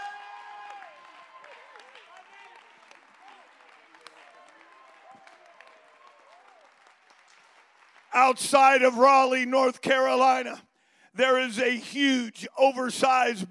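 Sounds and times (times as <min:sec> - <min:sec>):
audience applause: 0:00.0 - 0:09.0
crowd cheering: 0:00.0 - 0:09.4
speech: 0:08.2 - 0:13.4.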